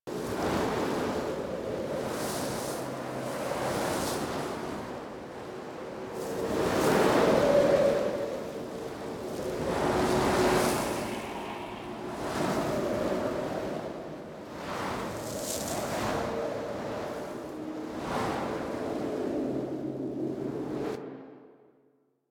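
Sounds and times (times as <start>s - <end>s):
medium wind blowing over landscape: 0.1s - 21.9s.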